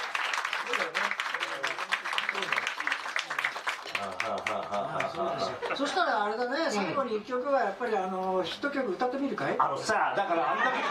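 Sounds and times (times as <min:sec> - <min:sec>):
small round of applause at a live birthday concert: 0:00.0 - 0:05.8
speech: 0:00.6 - 0:02.5, 0:04.0 - 0:10.8
laughter: 0:04.0 - 0:06.0, 0:10.2 - 0:10.8.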